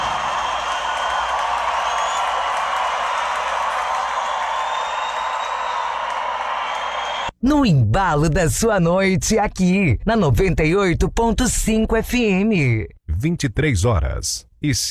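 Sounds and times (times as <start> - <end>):
crowd cheering: 0.0 - 7.3
large audience applause: 0.0 - 7.3
speech: 7.4 - 14.8.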